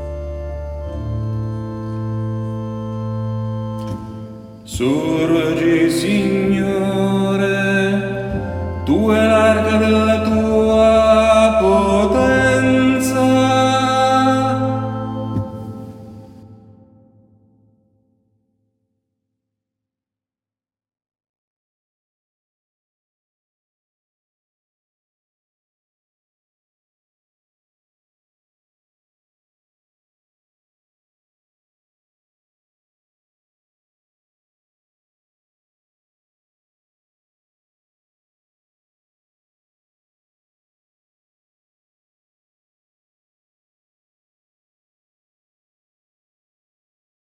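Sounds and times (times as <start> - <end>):
alto voices singing a psalm: 1.1 - 16.8.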